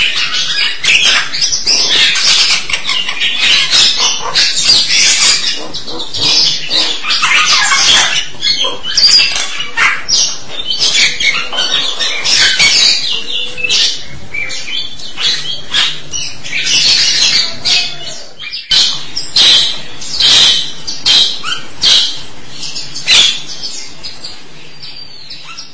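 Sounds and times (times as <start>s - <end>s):
starling chattering: 0.0s - 25.7s.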